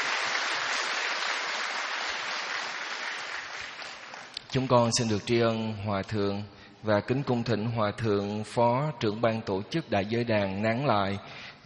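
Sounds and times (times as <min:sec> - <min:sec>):
applause in a hall at a Buddhist ordination ceremony: 0:00.0 - 0:05.1
speech: 0:04.5 - 0:11.6.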